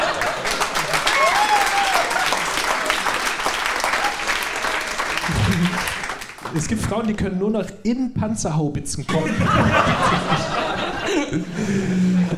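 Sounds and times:
laughter: 0.0s - 1.2s, 5.2s - 6.1s, 9.1s - 12.3s
audience clapping: 0.0s - 7.4s
speech: 6.6s - 10.6s, 11.3s - 12.3s.

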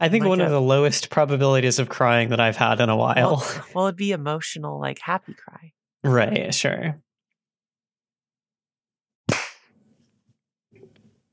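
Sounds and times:
speech: 0.0s - 7.0s
hand clap: 9.3s - 9.8s.

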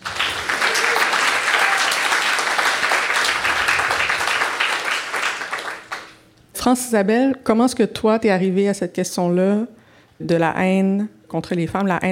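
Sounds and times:
audience applause: 0.0s - 6.2s
speech: 6.6s - 12.0s.

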